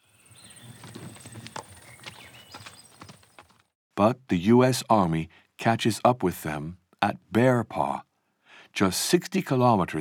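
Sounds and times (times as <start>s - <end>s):
horse hooves clip-clopping: 0.3s - 3.7s
speech: 4.0s - 8.1s, 8.7s - 10.0s.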